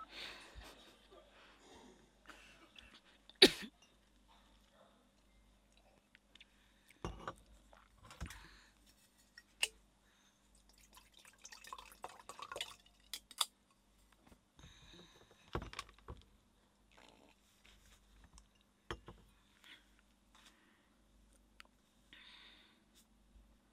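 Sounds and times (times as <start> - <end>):
faint small noises: 0.0 - 23.7
throat clearing and coughing during guided morning meditation: 3.4 - 3.8.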